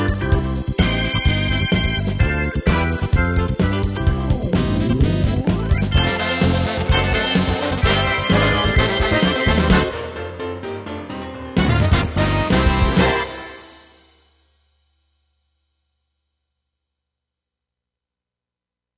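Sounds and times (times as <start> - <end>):
soul music: 0.0 - 13.9.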